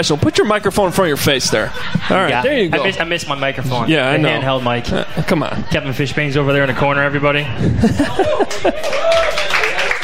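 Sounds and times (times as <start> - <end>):
laughter: 0.0 - 6.8, 7.4 - 10.0
murmuring voices: 0.0 - 8.8
speech: 0.0 - 9.7
light applause from a small crowd: 8.3 - 10.0.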